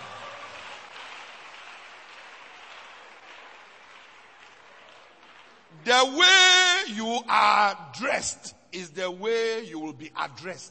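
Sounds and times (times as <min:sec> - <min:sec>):
audience clapping: 0:00.0 - 0:06.9
speech: 0:05.8 - 0:10.6.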